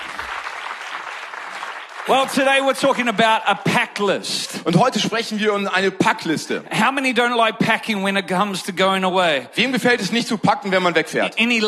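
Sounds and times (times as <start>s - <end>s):
audience clapping: 0.0s - 4.0s
speech: 2.1s - 11.6s.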